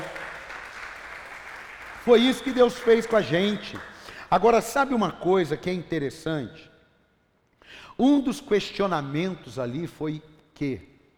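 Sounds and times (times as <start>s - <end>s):
audience applauding: 0.0s - 4.0s
speech: 2.0s - 6.7s, 7.7s - 10.9s.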